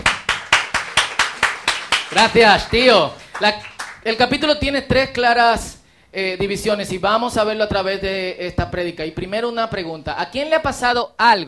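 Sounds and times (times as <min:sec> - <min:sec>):
rhythmic audience clapping: 0:00.0 - 0:04.7
speech: 0:02.1 - 0:11.4.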